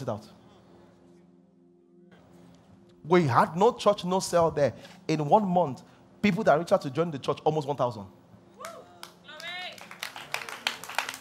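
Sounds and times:
speech: 0.0s - 0.4s, 3.0s - 8.8s
audience clapping: 8.6s - 11.1s
people cheering: 8.6s - 11.1s.

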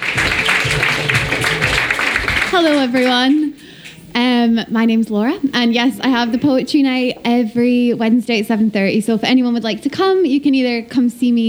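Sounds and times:
audience applause: 0.0s - 7.6s
speech: 2.5s - 3.5s, 4.2s - 11.4s.

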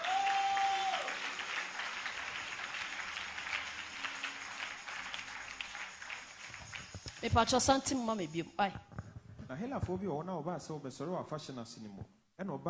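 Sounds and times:
audience clapping: 0.0s - 8.0s
speech: 7.2s - 8.9s, 9.5s - 12.6s.

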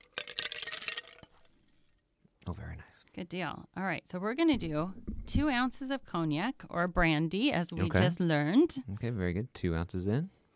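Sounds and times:
ice cubes dropped into mixing glass: 0.0s - 1.5s
speech: 2.5s - 10.4s.

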